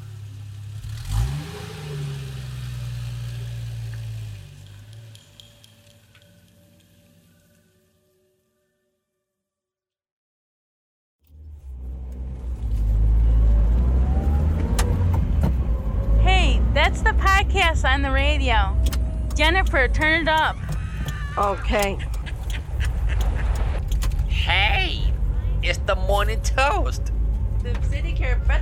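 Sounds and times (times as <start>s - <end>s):
SUV driving off: 0.0s - 7.6s, 11.3s - 28.6s
speech: 16.9s - 20.7s, 21.4s - 22.1s, 25.7s - 28.6s.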